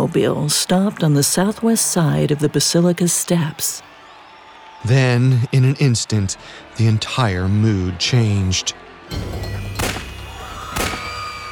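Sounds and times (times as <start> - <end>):
speech: 0.1 - 3.9, 4.8 - 9.6
gunshots: 9.2 - 11.5.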